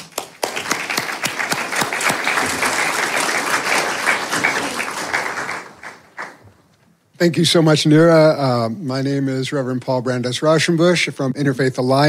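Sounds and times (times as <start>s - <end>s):
audience applause welcoming panelists to the stage: 0.0s - 6.4s
speech: 7.2s - 12.0s.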